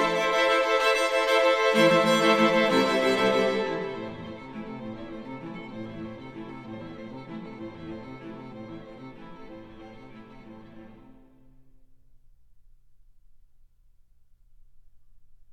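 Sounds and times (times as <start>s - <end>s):
string quartet playing: 0.0s - 11.4s.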